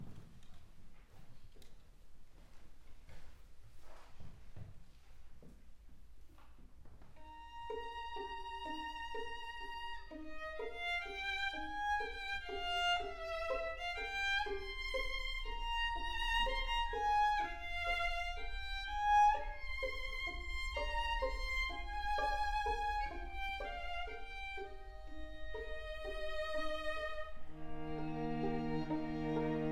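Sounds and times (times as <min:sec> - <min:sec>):
string quartet: 0:07.1 - 0:29.7.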